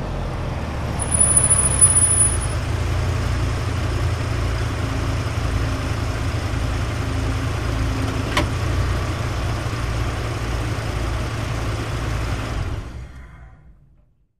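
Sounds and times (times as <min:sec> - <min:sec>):
Dodge Ram engine pulling in slowly, idling and switching off: 0:00.2 - 0:13.1
Dodge Ram brakes squeaking: 0:00.9 - 0:02.7.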